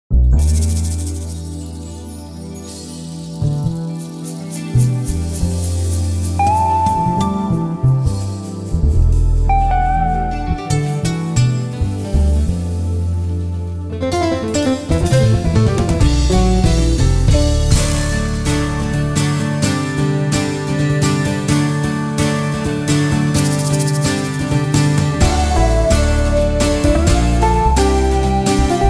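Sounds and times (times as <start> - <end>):
acoustic music: 0.1 - 28.8.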